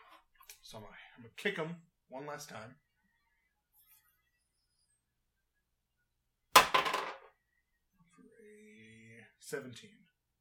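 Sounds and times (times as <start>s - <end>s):
speech: 0.7s - 2.9s, 9.5s - 10.0s
dice dropped onto a table: 6.6s - 7.3s.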